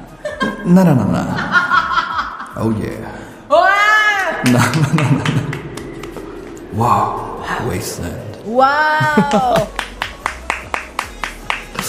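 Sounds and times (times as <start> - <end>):
laughter: 0.0 - 2.6, 4.4 - 5.8, 9.0 - 10.0
speech: 0.6 - 1.6, 2.6 - 3.6, 4.4 - 5.6, 6.7 - 9.8
production staff clapping: 4.2 - 6.3, 9.0 - 11.8.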